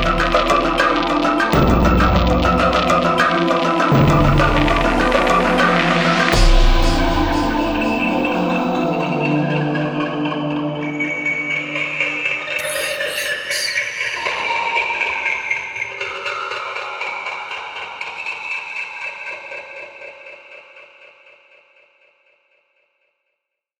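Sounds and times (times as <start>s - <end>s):
dark ambiences and textures: 0.0s - 17.8s.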